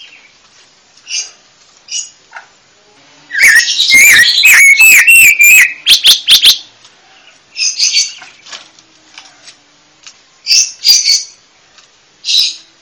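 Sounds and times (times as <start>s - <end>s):
panca warna bird chirping: 3.3s - 8.6s, 10.4s - 11.4s, 12.2s - 12.7s.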